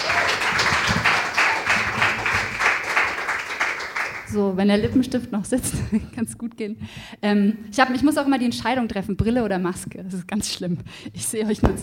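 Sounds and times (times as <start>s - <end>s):
audience applause: 0.0s - 4.3s
speech: 4.3s - 11.8s.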